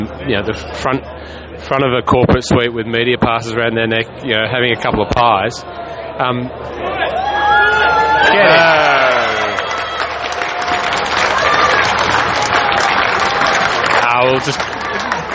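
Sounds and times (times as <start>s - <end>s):
speech: 0.0s - 6.9s, 8.2s - 8.9s, 14.2s - 14.7s
golf gallery applauding and cheering a shot: 7.0s - 15.3s.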